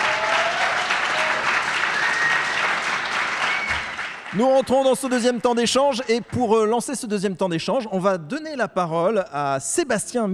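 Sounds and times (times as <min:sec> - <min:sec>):
audience applause: 0:00.0 - 0:06.5
faint whistle-like tone: 0:03.4 - 0:03.9
speech: 0:04.3 - 0:10.3.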